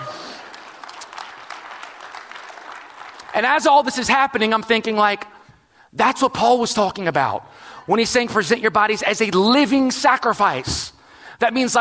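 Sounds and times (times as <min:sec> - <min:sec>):
audience clapping: 0:00.0 - 0:04.1
speech: 0:03.4 - 0:05.3, 0:05.9 - 0:11.8.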